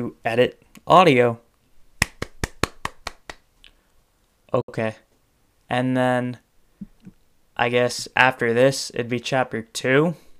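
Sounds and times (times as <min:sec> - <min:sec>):
speech: 0:00.0 - 0:01.4, 0:04.5 - 0:05.1, 0:05.7 - 0:06.9, 0:07.6 - 0:10.2
hand claps applause sound effect: 0:02.0 - 0:03.5.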